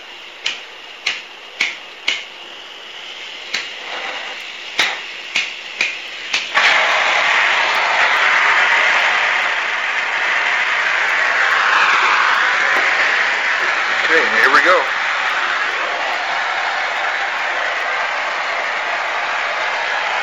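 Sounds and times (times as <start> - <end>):
torch igniter clicking: 0.3 - 20.1
torch roar of burning gas: 6.5 - 18.0.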